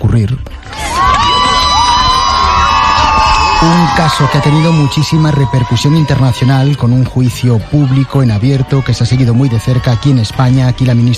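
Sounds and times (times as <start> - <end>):
speech: 0.1 - 0.8, 3.6 - 11.1
people shouting and cheering for Gisèle Pelicot at court: 0.4 - 11.1
crowd applauding Gisèle Pelicot at court: 0.6 - 11.1.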